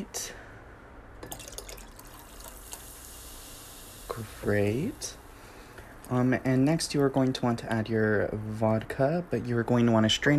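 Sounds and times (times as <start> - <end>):
cola poured into a glass of pomegranate juice: 1.2 - 5.1
speech: 4.2 - 5.2, 6.1 - 10.3.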